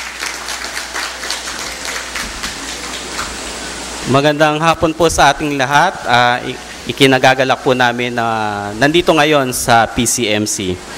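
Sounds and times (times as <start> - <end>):
audience applause: 0.0 - 3.7
speech: 4.1 - 10.9.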